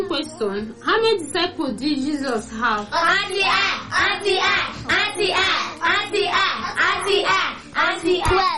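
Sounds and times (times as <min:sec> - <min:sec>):
speech: 0:00.1 - 0:08.5
children clapping hands: 0:02.8 - 0:08.5.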